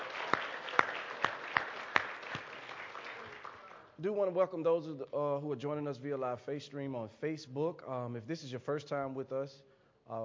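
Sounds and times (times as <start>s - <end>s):
audience clapping hands: 0.0s - 4.0s
speech: 4.0s - 10.2s.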